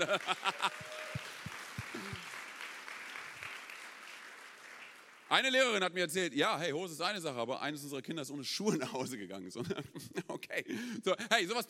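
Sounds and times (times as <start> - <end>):
speech: 0.0 - 0.9, 5.3 - 11.6
laughter: 0.0 - 1.1, 9.6 - 10.7
audience applause for teachers: 0.0 - 5.3.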